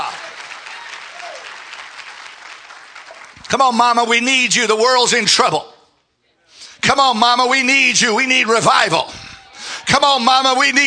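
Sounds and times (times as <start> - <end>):
church congregation clapping hands: 0.0 - 4.3
speech: 3.5 - 5.7, 6.8 - 9.2, 9.9 - 10.8.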